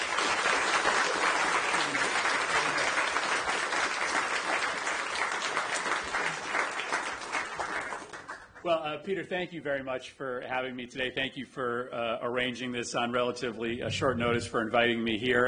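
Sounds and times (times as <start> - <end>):
audience applause welcoming Senator Murphy at an LSE event: 0.0 - 8.6
speech: 8.7 - 15.4.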